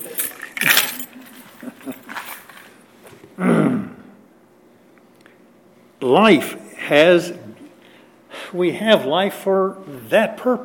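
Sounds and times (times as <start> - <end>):
keys jingling in a pocket: 0.0 - 2.8
speech: 6.0 - 7.4, 8.5 - 10.6.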